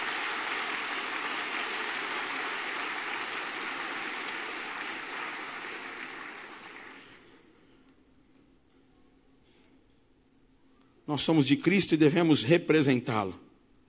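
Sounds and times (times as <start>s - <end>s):
audience applause: 0.0s - 7.3s
speech: 11.1s - 13.5s.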